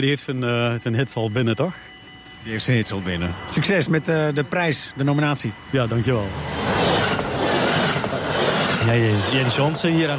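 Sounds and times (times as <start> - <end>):
speech: 0.0 - 6.8, 8.9 - 10.1
high tonal squeal: 0.0 - 10.1
train wheels clattering on rails: 6.9 - 10.1.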